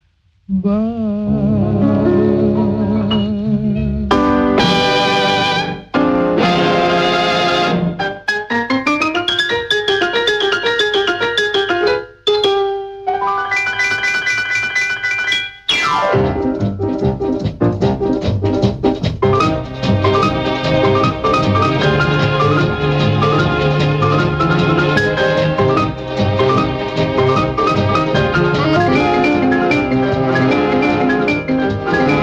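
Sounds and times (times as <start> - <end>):
piano: 0.6 - 32.2.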